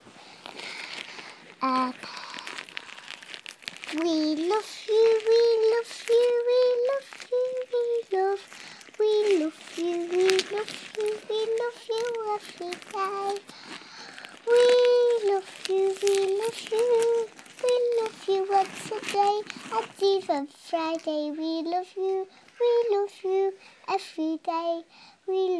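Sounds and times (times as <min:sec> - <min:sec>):
small girl singing a song for her mummy: 0:00.0 - 0:25.5.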